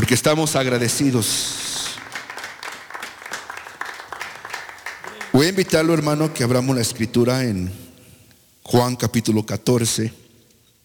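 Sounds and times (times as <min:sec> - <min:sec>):
speech: 0:00.1 - 0:01.9, 0:05.4 - 0:07.8, 0:08.7 - 0:10.2
audience clapping: 0:01.0 - 0:06.4.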